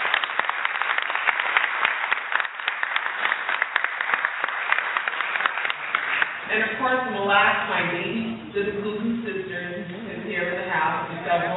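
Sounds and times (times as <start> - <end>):
audience applause: 0.0 - 6.5
speech: 6.5 - 11.5.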